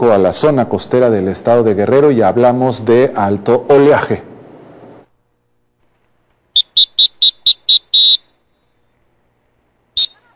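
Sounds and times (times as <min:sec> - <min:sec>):
speech: 0:00.0 - 0:04.3
lifeguard warning whistle: 0:06.6 - 0:08.3, 0:10.0 - 0:10.3.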